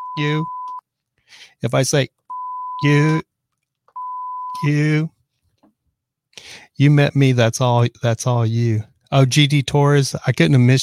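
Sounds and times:
beeper beeping: 0.0s - 0.8s, 2.3s - 3.2s, 4.0s - 4.9s
speech: 0.2s - 0.6s, 1.3s - 2.2s, 2.8s - 3.3s, 4.6s - 5.2s, 6.4s - 10.8s.

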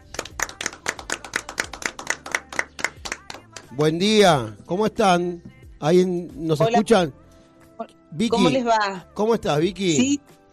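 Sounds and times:
loud applause: 0.0s - 3.8s
speech: 3.7s - 7.2s, 7.8s - 10.4s.

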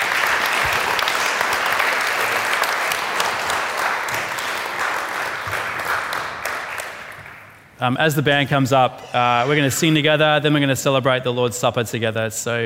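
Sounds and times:
audience applause: 0.0s - 7.6s
speech: 7.8s - 12.6s.

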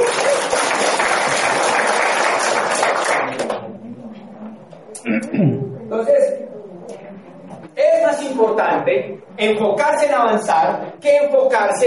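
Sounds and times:
crowd applauding: 0.0s - 3.6s
speech: 5.4s - 6.5s, 8.2s - 11.8s.

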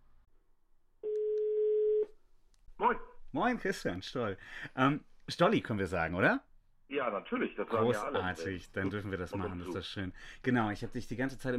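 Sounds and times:
telephone tone: 1.0s - 2.1s
speech: 3.3s - 11.5s.

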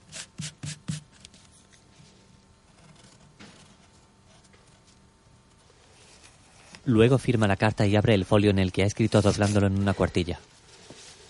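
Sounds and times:
rubber eraser scrubbing out a spelling mistake in a handwritten letter: 0.0s - 1.2s, 9.0s - 9.8s
speech: 6.9s - 10.5s.

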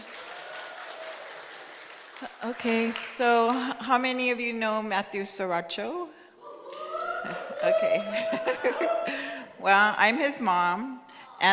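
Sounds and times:
audience clapping: 0.0s - 3.6s, 6.6s - 8.9s
speech: 2.2s - 6.2s, 7.2s - 11.5s
laughter: 6.5s - 9.6s.

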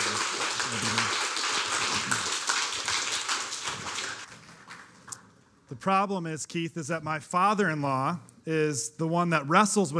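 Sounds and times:
round of applause: 0.0s - 5.2s
speech: 5.7s - 9.9s.

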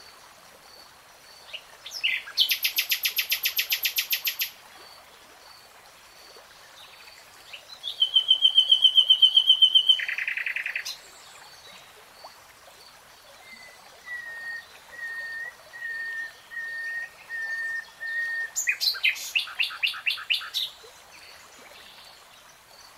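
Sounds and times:
nightingale song: 1.4s - 4.6s, 6.8s - 11.9s, 13.3s - 22.1s.

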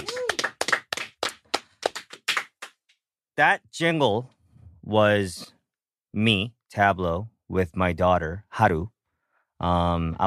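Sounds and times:
sparse hand clapping: 0.0s - 2.8s
speech: 3.4s - 5.4s, 6.1s - 8.9s, 9.6s - 10.2s.

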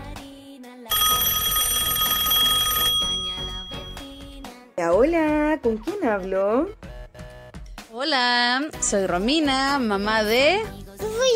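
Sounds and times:
telephone bell ringing: 0.9s - 4.4s
speech: 4.8s - 6.8s, 7.9s - 11.3s.

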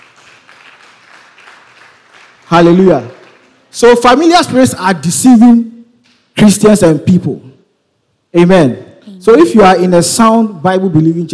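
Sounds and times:
crowd of people clapping: 0.0s - 3.9s
speech: 2.5s - 3.2s, 3.8s - 5.7s, 6.4s - 7.5s, 8.3s - 11.3s.

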